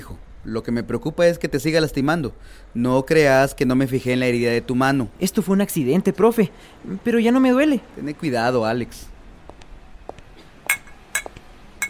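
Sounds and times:
faint noise: 0.0s - 11.8s
speech: 0.4s - 9.1s
glasses clinking as lemonade is served: 10.7s - 11.8s.

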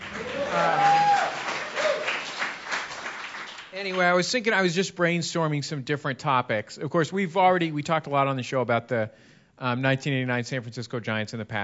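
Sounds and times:
audience applause: 0.0s - 4.1s
speech: 3.8s - 11.6s.

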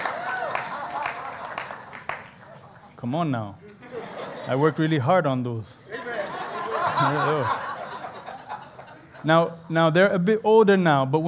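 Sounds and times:
audience clapping: 0.0s - 2.8s
laughter: 0.0s - 3.0s, 3.6s - 5.0s, 5.8s - 9.6s
speech: 3.0s - 3.6s, 4.4s - 5.8s, 6.8s - 7.6s, 9.2s - 11.2s.

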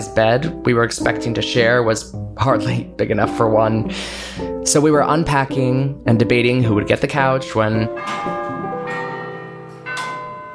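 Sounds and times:
speech: 0.2s - 8.5s
clock tower bell tolling: 7.6s - 10.5s.

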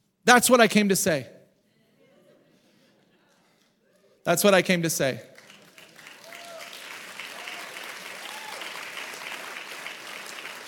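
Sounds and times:
speech: 0.2s - 1.4s, 4.2s - 5.3s
audience clapping: 5.3s - 10.6s.

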